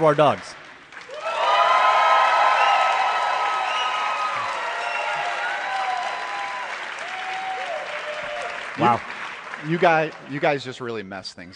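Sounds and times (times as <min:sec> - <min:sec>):
speech: 0:00.0 - 0:00.6, 0:08.8 - 0:11.5
live audience applause: 0:00.0 - 0:10.9
audience whoops and shouts: 0:01.1 - 0:09.0.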